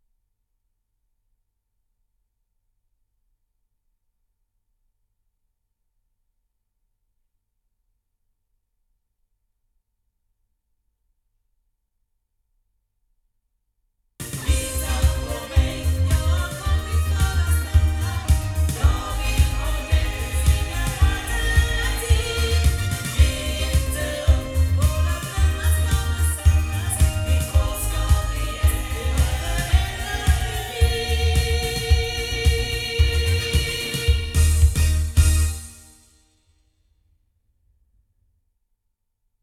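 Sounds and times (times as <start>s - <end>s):
loudspeakers recorded with a Rode NT2 microphone in omni: 14.2s - 35.7s.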